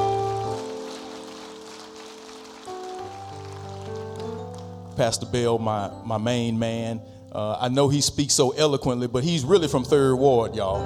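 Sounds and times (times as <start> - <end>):
audience applause: 0.0 - 4.7
speech: 5.0 - 10.8.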